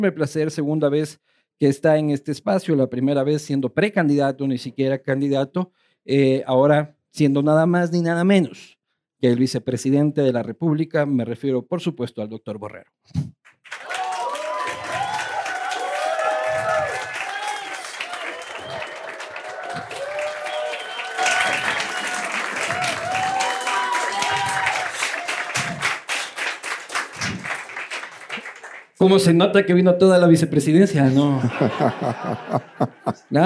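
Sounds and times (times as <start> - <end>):
speech: 0.0 - 13.4, 29.0 - 33.4
audience applause: 13.6 - 29.0, 31.6 - 33.4
laughter: 31.0 - 33.4.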